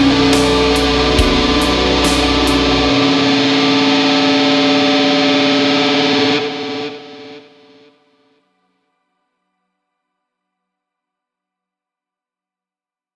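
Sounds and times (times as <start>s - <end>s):
guitar solo: 0.0s - 7.8s.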